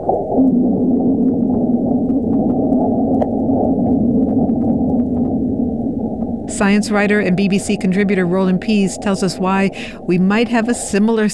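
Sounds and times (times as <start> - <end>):
sped-up seismic vibrations from a meteor impact on Mars: 0.0 - 11.1
faint crackles: 0.0 - 11.3
speech: 6.6 - 11.3.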